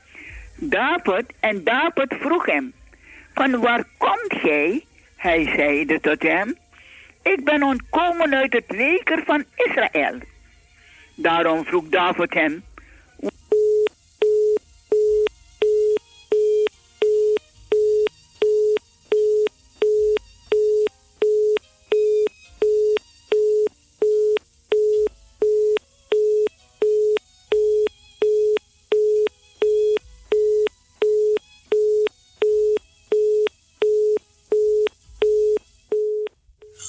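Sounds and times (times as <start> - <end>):
speech: 0.6 - 2.8, 3.4 - 6.6, 7.2 - 10.3, 11.2 - 13.3
telephone busy signal after a dropped connection: 13.5 - 36.8.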